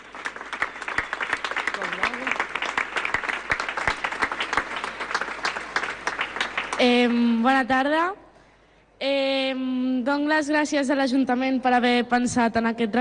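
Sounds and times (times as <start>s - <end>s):
audience applause: 0.0s - 6.9s
speech: 6.8s - 8.2s, 9.0s - 12.9s.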